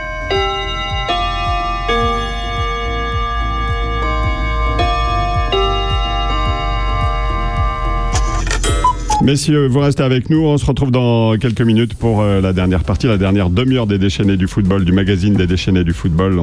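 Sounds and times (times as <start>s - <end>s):
radio station time chime: 0.0s - 9.3s
clock ticking: 0.3s - 9.4s
speech: 9.3s - 16.4s.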